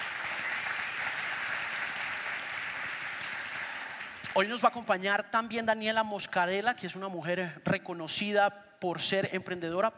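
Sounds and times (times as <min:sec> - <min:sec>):
audience applause: 0:00.0 - 0:04.4
speech: 0:04.4 - 0:09.9.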